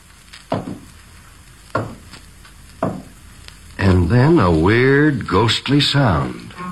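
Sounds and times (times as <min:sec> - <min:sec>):
hollow footsteps: 0:00.3 - 0:01.0, 0:01.7 - 0:03.2
speech: 0:04.1 - 0:06.5.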